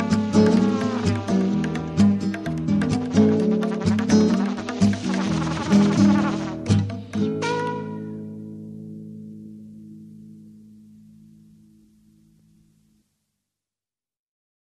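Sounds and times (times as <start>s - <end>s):
trumpet: 0.0s - 6.8s, 7.4s - 8.2s.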